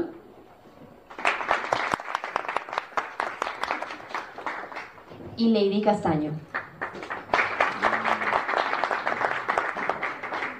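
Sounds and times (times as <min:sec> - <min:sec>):
audience clapping for contestants at a competition: 0:01.1 - 0:05.2, 0:06.5 - 0:10.5
speech: 0:05.4 - 0:06.5.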